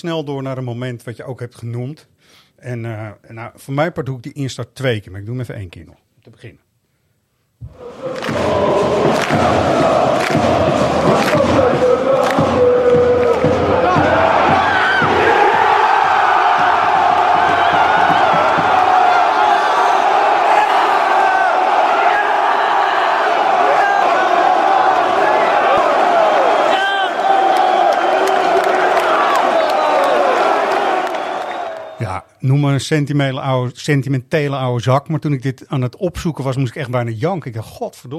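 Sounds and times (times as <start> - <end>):
speech: 0.0 - 6.6, 7.6 - 11.8, 32.4 - 38.1
huge football stadium crowd cheering: 7.7 - 32.2.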